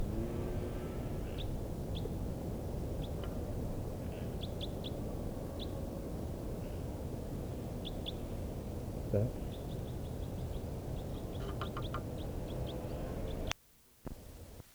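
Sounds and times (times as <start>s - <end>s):
loud low rumble: 0.0s - 1.5s
type 4 bird flight calls: 0.0s - 13.5s.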